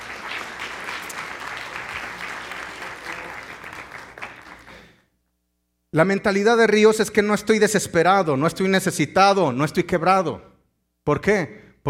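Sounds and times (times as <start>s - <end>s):
crowd applauding: 0.0s - 5.0s
speech: 5.9s - 10.5s, 11.1s - 11.8s.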